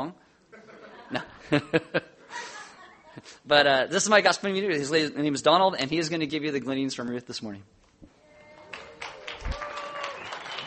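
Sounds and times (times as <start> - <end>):
speech: 0.0 - 0.2, 1.1 - 2.5, 3.2 - 7.8
crowd applauding: 8.4 - 10.6.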